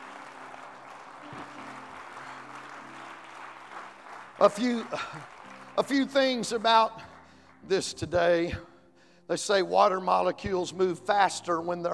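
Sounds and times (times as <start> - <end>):
audience clapping hands: 0.0 - 8.3
speech: 4.4 - 8.7, 9.3 - 11.9.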